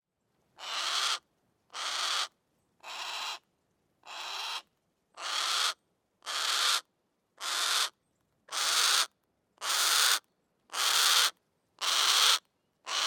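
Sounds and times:
Harris's hawk shrieking: 0.6 - 1.2, 1.8 - 3.4, 4.1 - 4.6, 5.2 - 6.8, 8.5 - 10.2, 10.8 - 13.0.

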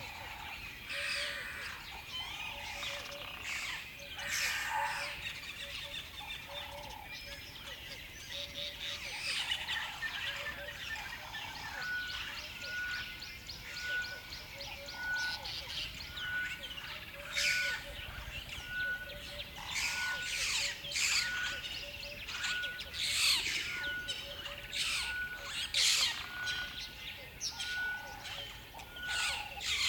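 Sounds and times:
dawn birds calling in a savanna river bed: 0.0 - 29.8.

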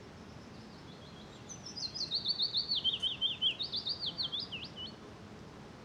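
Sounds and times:
willow warbler singing in a small birch forest in Norway: 0.4 - 5.0.

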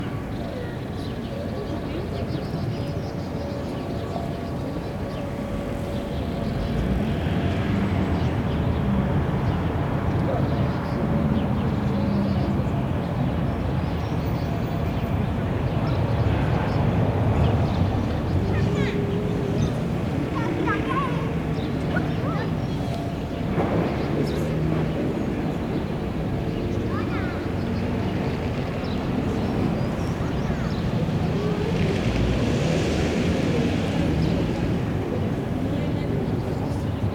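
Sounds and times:
mid close traffic in Berlin: 0.0 - 37.1
kids and their parents at a playground in Berlin: 17.7 - 37.1.

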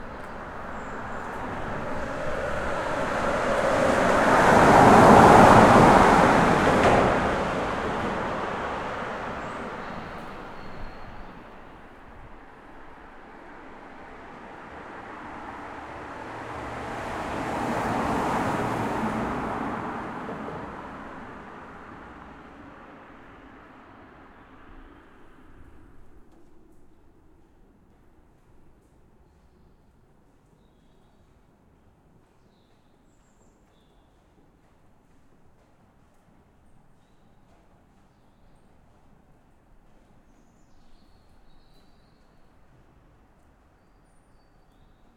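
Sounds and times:
vehicle doors closing: 0.0 - 13.0
birds in a city at night: 0.0 - 13.6
cars passing under a bridge in a city at night: 0.0 - 26.6
bus in a city at night: 0.0 - 26.9
tram in a city at night: 0.0 - 29.2.

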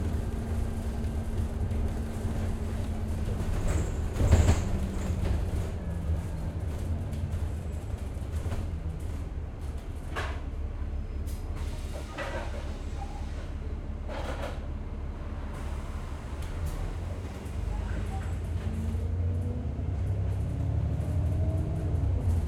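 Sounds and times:
interior ambiance of a moving bus in the UK: 0.0 - 22.4.

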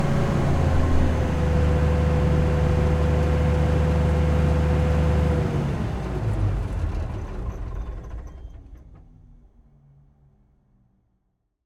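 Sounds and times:
Claas Dominator combine harvester engine running at constant RPM, onboard: 0.0 - 8.2.

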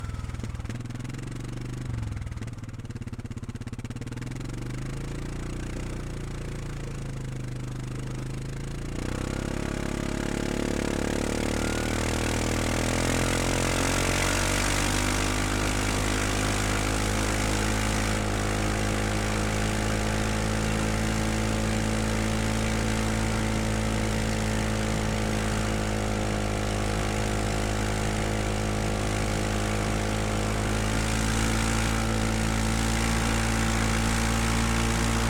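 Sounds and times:
ATV engine exhaust at steady RPMs, starting and driving: 0.0 - 35.2.

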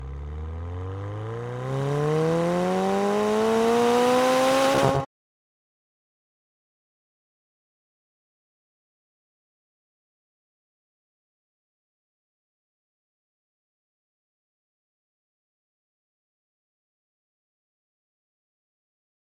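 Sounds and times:
McLaren 720S Spider exhaust while driving on ramps, left side onboard: 0.0 - 5.0.

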